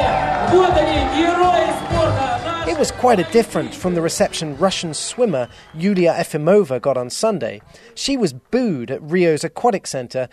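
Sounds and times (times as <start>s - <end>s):
Russian fans cheering at Russia House during the Rio Olympics: 0.0s - 6.7s
speech: 0.5s - 10.3s.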